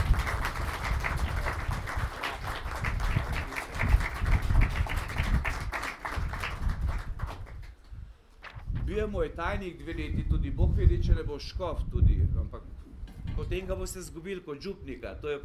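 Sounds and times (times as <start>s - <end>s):
crowd applause: 0.0s - 7.7s
speech: 9.0s - 12.7s, 13.4s - 15.4s.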